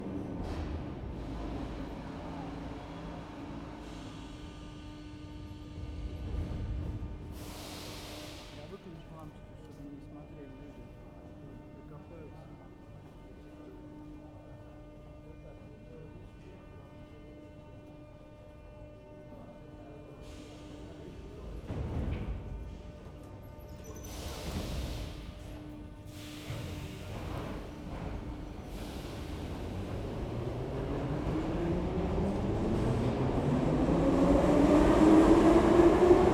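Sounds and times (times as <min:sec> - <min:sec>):
metro trains arriving and departing at a platform in Moscow: 0:00.0 - 0:36.3.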